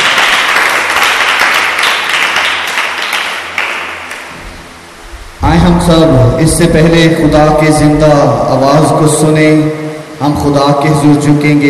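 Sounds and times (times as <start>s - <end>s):
church congregation applauding loudly: 0.0s - 4.3s
speech: 5.6s - 11.6s.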